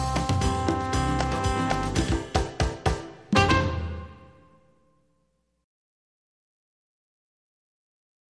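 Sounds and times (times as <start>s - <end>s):
samba music: 0.0s - 4.9s.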